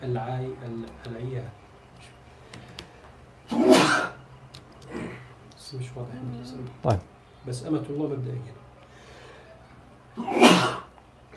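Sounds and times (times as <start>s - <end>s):
speech: 0.0s - 2.2s, 5.7s - 8.7s
person sneezing during an Islamic quiz programme: 3.5s - 4.2s, 10.2s - 10.9s.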